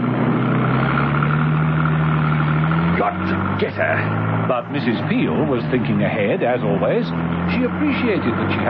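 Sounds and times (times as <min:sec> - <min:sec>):
car engine driving in pursuit: 0:00.0 - 0:08.6
speech: 0:03.6 - 0:08.6.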